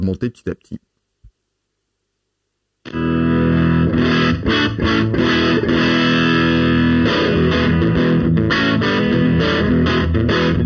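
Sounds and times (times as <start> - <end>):
speech: 0.0 - 0.9
electric guitar with saturated preamp distortion: 2.8 - 10.6.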